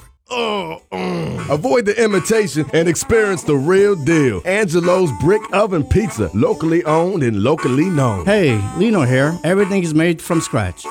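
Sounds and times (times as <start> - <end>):
person imitating stomach groaning after eating pizza: 0.0 - 1.7, 8.1 - 8.9
speech: 0.3 - 0.8, 1.5 - 10.8.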